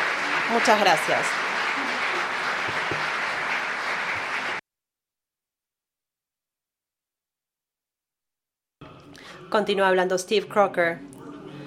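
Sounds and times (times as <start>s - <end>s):
audience applause: 0.0s - 4.6s
speech: 0.5s - 1.4s, 9.5s - 11.1s.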